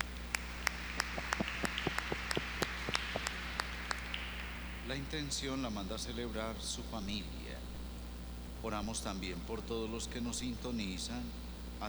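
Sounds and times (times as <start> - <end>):
audience applause: 0.0 - 5.0
speech: 4.9 - 7.5, 8.6 - 11.8.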